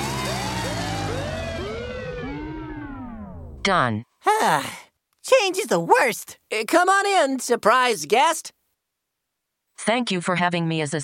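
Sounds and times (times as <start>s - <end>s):
siren-like alarm: 0.0s - 3.6s
speech: 3.6s - 8.6s, 9.8s - 11.0s.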